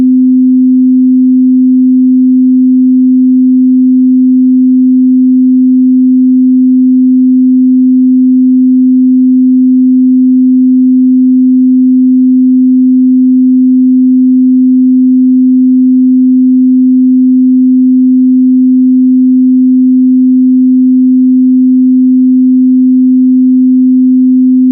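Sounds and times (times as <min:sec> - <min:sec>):
256Hz generated sine wave tone: 0:00.0 - 0:24.6.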